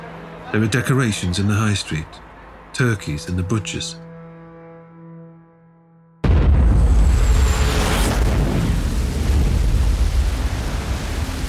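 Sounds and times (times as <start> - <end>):
speech: 0.5 - 2.2, 2.8 - 4.0
massive explosion: 6.2 - 11.4.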